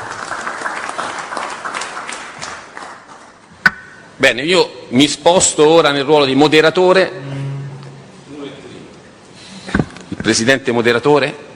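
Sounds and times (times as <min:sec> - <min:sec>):
audience applause: 0:00.0 - 0:03.4
speech: 0:04.2 - 0:07.3, 0:10.3 - 0:11.5.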